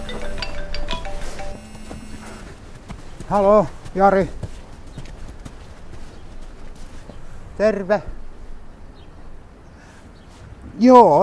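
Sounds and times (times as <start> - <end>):
phone ringing with an electronic ringtone: 0.0 - 2.6
speech: 3.3 - 4.4, 7.6 - 8.2, 10.8 - 11.2.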